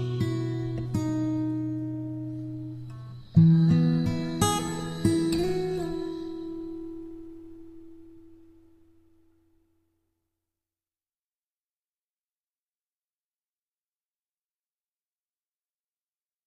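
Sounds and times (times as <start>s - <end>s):
acoustic lullaby: 0.0s - 9.7s.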